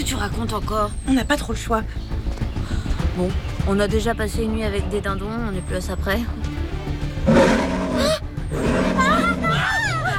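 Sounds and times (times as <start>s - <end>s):
speech: 0.1s - 2.2s, 3.2s - 6.6s
jaguar roaring: 7.3s - 10.0s.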